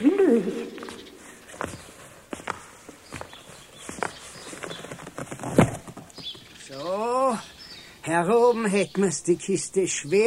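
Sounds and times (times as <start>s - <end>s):
footsteps going up a staircase: 0.0s - 6.3s
speech: 8.1s - 10.2s.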